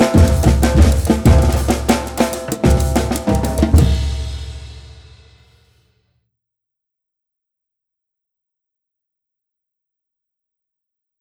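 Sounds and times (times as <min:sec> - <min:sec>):
maracatu rhythmic session: 0:00.0 - 0:05.3.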